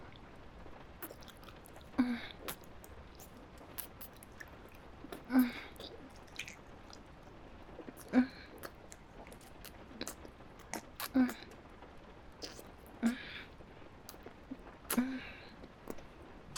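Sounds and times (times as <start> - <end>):
person chewing food while tasting it: 1.0 - 7.1, 7.8 - 11.2, 12.4 - 13.2, 14.1 - 15.1, 15.9 - 16.5.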